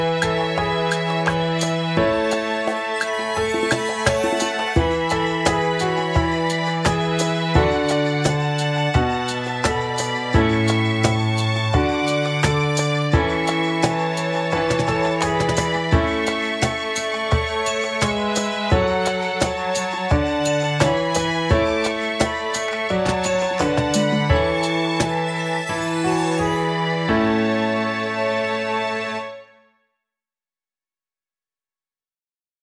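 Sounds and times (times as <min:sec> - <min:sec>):
piano: 0:00.0 - 0:29.5
cello: 0:00.0 - 0:29.6
violins: 0:00.0 - 0:29.6
drums: 0:00.2 - 0:26.0.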